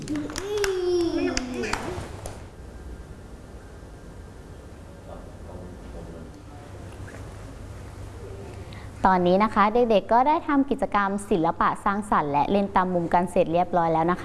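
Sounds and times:
crowd of children clapping hands: 0:00.0 - 0:02.4
speech: 0:09.0 - 0:14.2.

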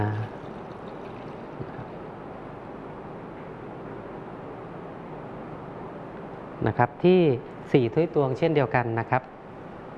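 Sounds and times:
milk pouring into a mix of milk and water: 0:00.0 - 0:02.0
speech: 0:06.6 - 0:09.3.

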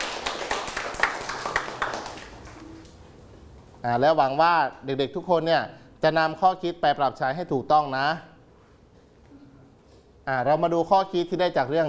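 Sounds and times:
children clapping hands: 0:00.0 - 0:03.0
speech: 0:03.8 - 0:08.3, 0:10.3 - 0:11.8.

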